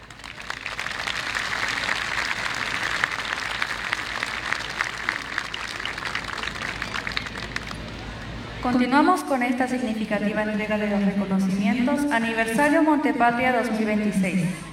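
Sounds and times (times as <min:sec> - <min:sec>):
audience applause: 0:00.0 - 0:08.3
speech: 0:08.7 - 0:14.7.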